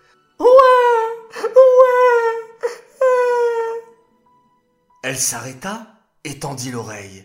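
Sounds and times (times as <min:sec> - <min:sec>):
infant crying from a cradle floating on a river: 0:00.4 - 0:04.0
speech: 0:05.1 - 0:07.2.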